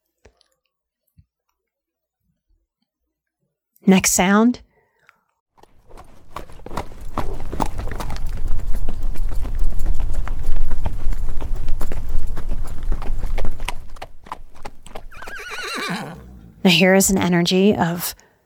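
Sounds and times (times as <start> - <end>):
speech: 3.9 - 4.7, 16.7 - 18.2
horse hooves pounding the ground at a run: 5.6 - 18.1
horse whinnying: 14.9 - 16.7.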